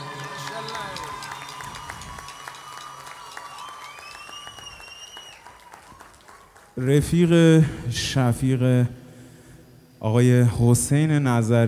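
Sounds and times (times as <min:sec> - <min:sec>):
concert audience clapping and cheering for the band's electric guitarist: 0:00.0 - 0:07.2
speech: 0:06.8 - 0:09.0, 0:10.0 - 0:11.6.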